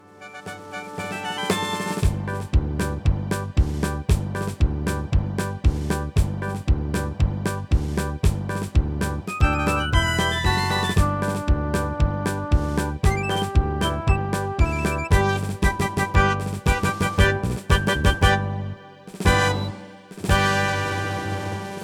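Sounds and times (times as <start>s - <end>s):
dinner march music: 0.0s - 21.8s.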